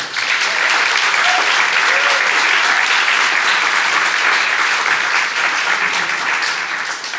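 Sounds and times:
studio audience applause: 0:00.0 - 0:07.1
studio audience whoops and cheers: 0:01.1 - 0:02.9.

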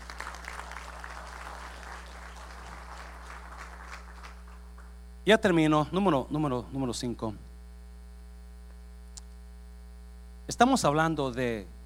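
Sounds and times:
audience applauding: 0:00.0 - 0:05.0
speech: 0:05.3 - 0:07.4, 0:10.6 - 0:11.8.

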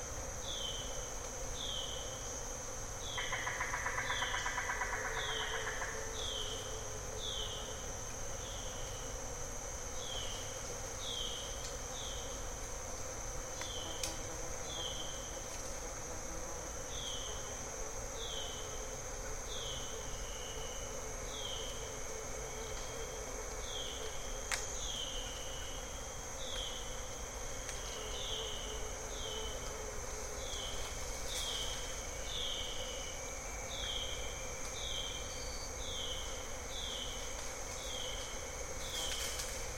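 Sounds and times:
thin high insect whine: 0:00.0 - 0:39.7
bird-voiced treefrogs calling in the evening: 0:03.1 - 0:06.6.

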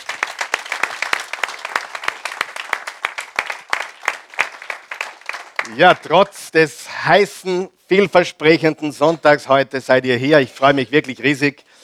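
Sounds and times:
crowd applause: 0:00.0 - 0:06.1
speech: 0:05.7 - 0:11.7.

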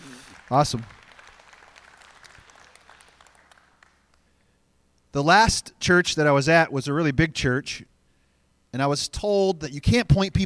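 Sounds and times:
audience clapping: 0:00.0 - 0:04.3
speech: 0:00.5 - 0:01.0, 0:05.2 - 0:07.9, 0:08.7 - 0:10.4.

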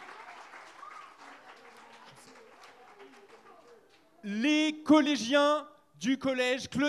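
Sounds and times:
audience applause: 0:00.0 - 0:03.9
speech: 0:04.2 - 0:06.8.

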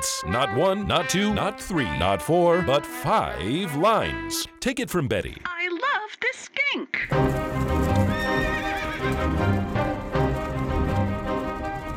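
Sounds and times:
speech: 0:00.0 - 0:07.8
hooves of horses pulling a royal carriage at speed: 0:07.1 - 0:11.9
high horse whinny: 0:08.1 - 0:09.4.

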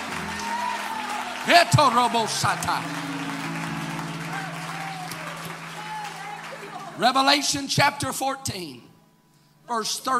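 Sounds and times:
audience clapping: 0:00.0 - 0:07.8
speech: 0:01.5 - 0:03.1, 0:07.0 - 0:08.8, 0:09.7 - 0:10.1.

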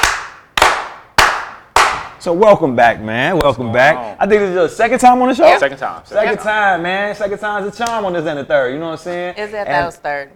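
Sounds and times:
slow clapping: 0:00.0 - 0:02.2
speech: 0:02.2 - 0:10.3.

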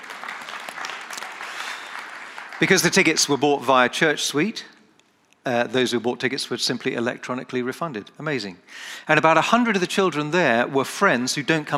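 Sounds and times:
crowd clapping: 0:00.0 - 0:03.4
speech: 0:02.6 - 0:04.8, 0:05.5 - 0:11.7.

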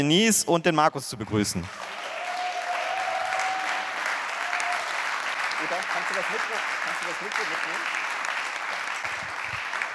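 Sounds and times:
speech: 0:00.0 - 0:01.9, 0:06.2 - 0:08.0
audience applause: 0:01.6 - 0:09.9.

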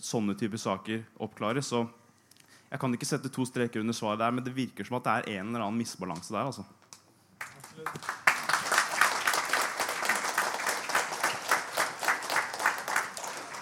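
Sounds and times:
speech: 0:00.0 - 0:02.0, 0:02.7 - 0:06.8
audience applause: 0:07.4 - 0:13.6.

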